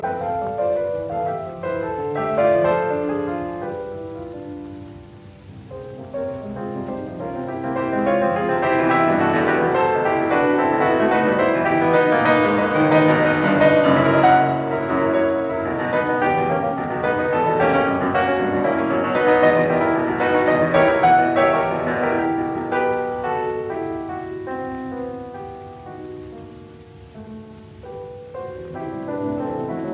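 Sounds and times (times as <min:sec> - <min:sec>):
piano intermezzo in E minor: 0:00.0 - 0:29.9.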